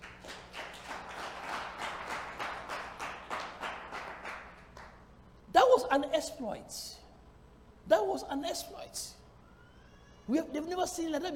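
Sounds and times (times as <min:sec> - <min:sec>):
audience rhythmic clapping: 0:00.0 - 0:05.1
speech: 0:05.8 - 0:07.0, 0:07.9 - 0:09.2, 0:10.3 - 0:11.3.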